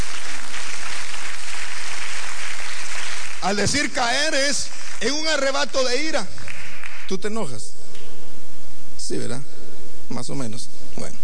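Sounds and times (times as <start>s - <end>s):
audience applause: 0.0s - 7.1s
speech: 3.4s - 6.4s, 7.1s - 7.7s, 9.1s - 11.2s.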